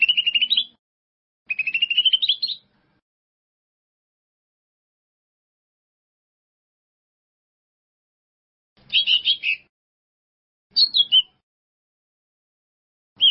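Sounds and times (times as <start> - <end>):
bird song: 0.0 - 0.8, 1.5 - 2.8, 8.8 - 9.7, 10.7 - 11.4.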